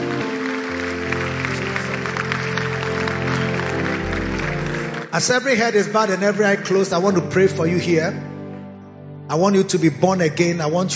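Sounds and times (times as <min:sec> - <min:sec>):
audience clapping hands: 0:00.0 - 0:07.2
speech: 0:05.2 - 0:08.3, 0:09.3 - 0:10.9.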